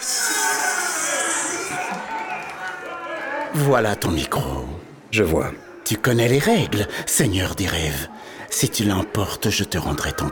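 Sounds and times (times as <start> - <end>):
crowd shouting and whooping: 0.0 - 3.5
crowd clapping: 1.3 - 3.7
speech: 3.5 - 10.3.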